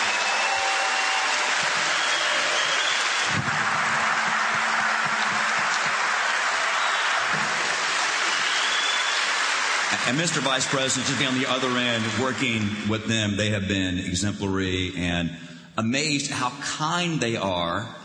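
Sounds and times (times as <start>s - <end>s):
audience round of applause: 0.0s - 13.0s
speech: 10.0s - 18.0s.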